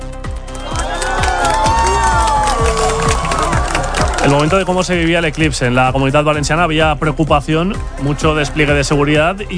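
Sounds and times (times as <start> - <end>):
crowd cheering and applauding: 0.2 - 6.1
high whoops and shouts: 0.5 - 4.8
speech: 4.3 - 9.5.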